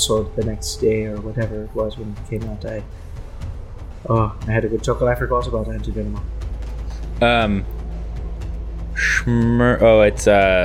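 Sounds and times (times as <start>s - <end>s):
speech: 0.0s - 3.2s, 4.0s - 6.4s, 7.2s - 7.8s, 9.2s - 10.6s
steady low hum: 0.0s - 10.6s
bird squawking harsh voice-like calls: 9.0s - 9.3s.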